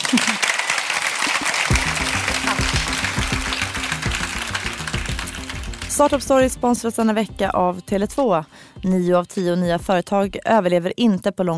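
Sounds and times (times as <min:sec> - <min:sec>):
audience applause: 0:00.0 - 0:06.4
speech: 0:00.1 - 0:00.5, 0:06.0 - 0:11.5.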